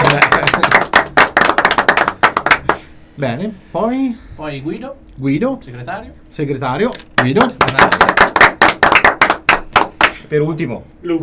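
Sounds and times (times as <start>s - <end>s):
small group applauding: 0.0s - 2.9s, 7.1s - 10.2s
speech: 3.2s - 8.0s, 10.3s - 11.2s.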